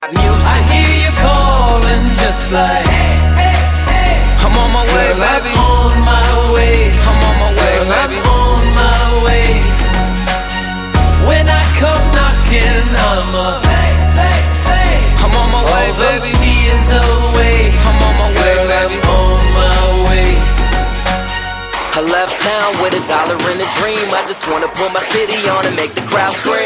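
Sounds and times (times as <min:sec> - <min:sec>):
rap music: 0:00.0 - 0:26.6.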